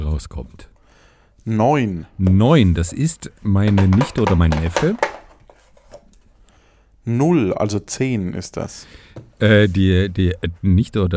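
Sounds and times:
speech: 0.2s - 0.7s, 1.4s - 5.1s, 7.1s - 11.1s
dice rolling on a table: 3.6s - 6.0s.

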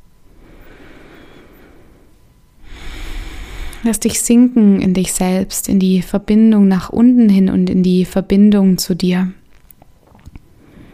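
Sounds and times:
deep full breaths in yoga child's pose: 0.3s - 4.1s, 10.6s - 10.9s
speech: 3.8s - 9.4s.

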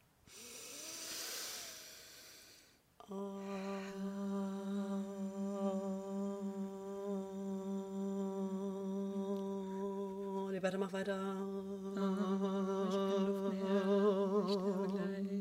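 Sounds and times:
long inhaled breath: 0.3s - 4.0s
group chanting Om together: 3.0s - 15.3s
speech: 3.1s - 3.4s, 10.6s - 12.5s.

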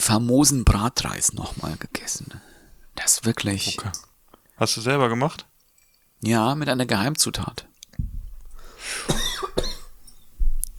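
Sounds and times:
speech: 0.0s - 5.5s, 6.2s - 8.1s
person coughing: 8.9s - 10.0s.

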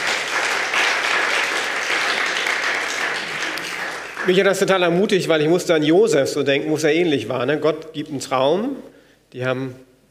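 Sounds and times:
audience applause: 0.0s - 4.6s
speech: 4.2s - 9.9s.

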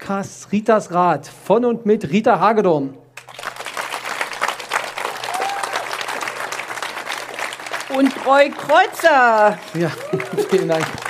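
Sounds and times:
speech: 0.1s - 3.0s, 8.0s - 11.0s
live audience applause: 3.2s - 11.0s
laughter: 9.7s - 11.0s.

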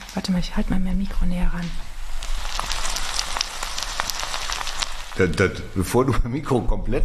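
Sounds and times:
food sizzling in a wok: 0.0s - 6.0s
speech: 0.2s - 1.9s, 5.2s - 7.0s.

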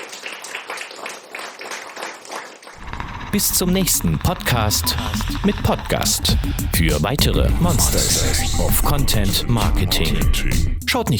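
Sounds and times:
audience applause: 0.0s - 7.0s
speech: 3.3s - 11.1s.

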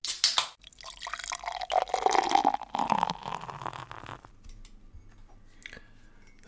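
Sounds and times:
beer pouring from a can into a glass: 0.6s - 4.3s.

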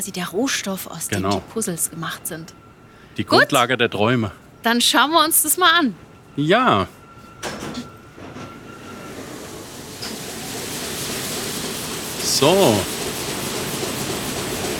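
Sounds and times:
speech: 0.0s - 7.0s, 12.4s - 13.0s
large industrial printing presses running: 7.5s - 14.7s.

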